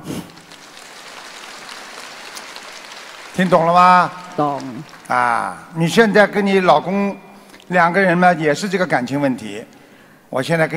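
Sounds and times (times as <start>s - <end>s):
crowd applause: 0.0s - 6.4s
speech: 3.4s - 10.7s.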